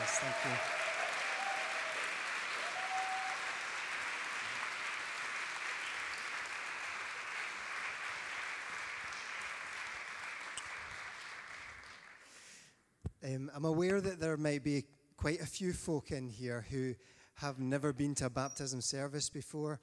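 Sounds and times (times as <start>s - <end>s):
audience cheering and applause: 0.0s - 12.2s
speech: 0.2s - 0.8s, 13.2s - 19.8s.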